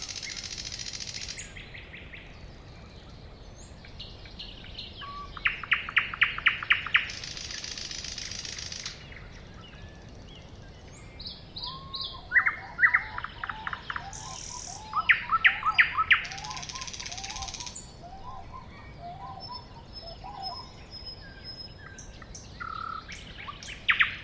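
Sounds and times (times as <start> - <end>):
thrush nightingale singing: 0.0 - 24.2.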